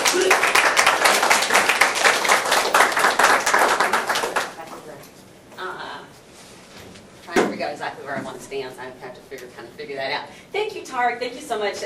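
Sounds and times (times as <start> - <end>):
audience applause welcoming a guest speaker at the University of Nebraska Lincoln: 0.0 - 4.7
speech: 8.4 - 11.8.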